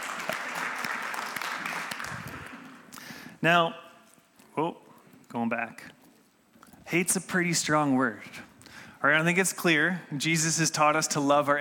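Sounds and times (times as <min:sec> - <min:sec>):
crowd clapping: 0:00.0 - 0:03.0
speech: 0:03.4 - 0:03.8, 0:04.6 - 0:06.0, 0:06.9 - 0:11.5.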